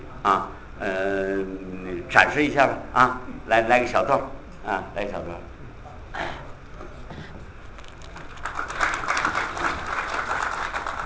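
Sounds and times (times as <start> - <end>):
speech: 0.2 - 5.5
audience applause: 7.8 - 11.0.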